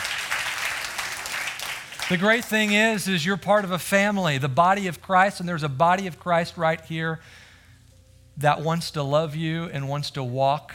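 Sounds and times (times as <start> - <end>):
church audience applause: 0.0 - 2.8
speech: 2.1 - 7.4, 8.4 - 10.7.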